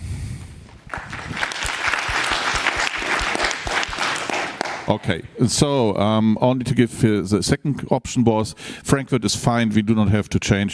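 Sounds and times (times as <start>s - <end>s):
meeting audience clapping hands: 0.8s - 5.2s
speech: 4.9s - 10.7s.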